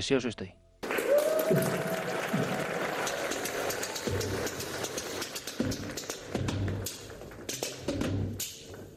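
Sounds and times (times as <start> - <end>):
speech: 0.0 - 0.6, 1.5 - 1.9
rumba music: 1.8 - 8.4.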